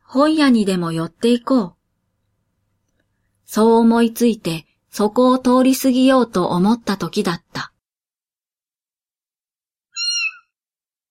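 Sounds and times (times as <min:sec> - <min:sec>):
speech: 0:00.1 - 0:01.8, 0:03.5 - 0:07.7
small cat meowing: 0:10.0 - 0:10.4.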